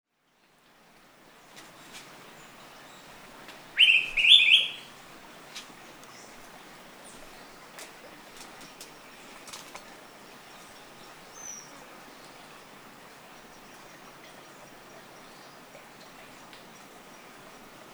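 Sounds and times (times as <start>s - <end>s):
Araripe manakin call: 3.8s - 4.9s.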